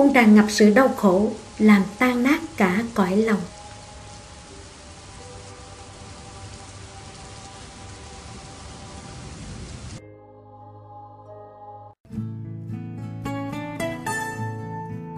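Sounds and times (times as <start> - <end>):
speech: 0.0 - 3.6
heavy rain hissing at night in Taipei: 0.0 - 10.0.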